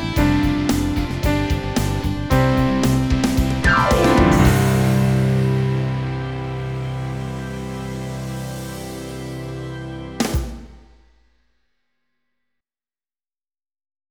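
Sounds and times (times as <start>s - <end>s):
fast GarageBand music: 0.0s - 11.0s.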